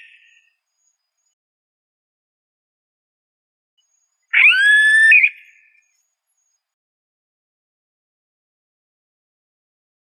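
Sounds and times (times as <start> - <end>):
yellow-headed caracara screaming: 4.3 - 5.3.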